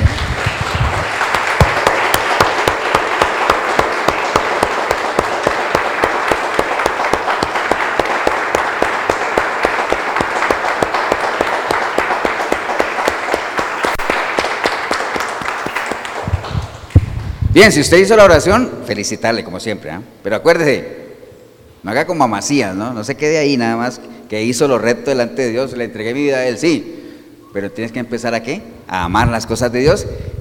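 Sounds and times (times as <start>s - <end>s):
audience clapping: 0.0s - 17.2s
speech: 17.6s - 21.0s, 21.8s - 26.9s, 27.6s - 30.3s.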